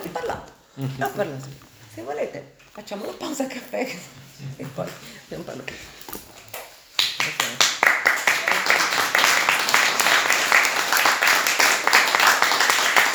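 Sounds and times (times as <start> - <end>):
speech: 0.8 - 6.2
audience applause: 7.2 - 13.1.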